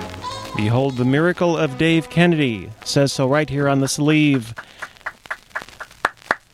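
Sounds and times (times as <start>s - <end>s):
speech: 0.6s - 4.9s
applause from the gallery: 3.8s - 6.5s.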